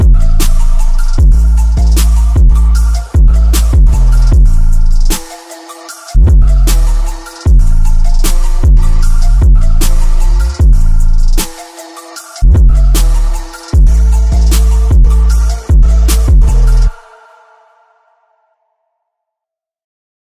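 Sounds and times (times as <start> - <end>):
car bass system: 0.0 - 5.2, 6.2 - 11.4, 12.4 - 16.9.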